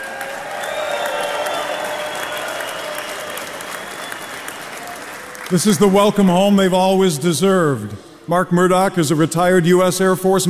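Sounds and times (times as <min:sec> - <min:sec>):
large crowd applauding a homecoming: 0:00.0 - 0:06.6
whistles: 0:00.6 - 0:05.4
speech: 0:05.5 - 0:10.4.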